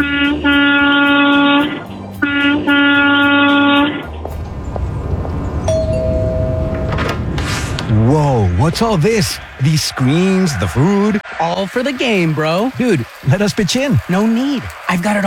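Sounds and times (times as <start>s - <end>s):
18-wheeler big rig air horn blasts: 0.0s - 4.1s
rumbling truck engine: 2.9s - 9.6s
speech: 8.7s - 15.2s.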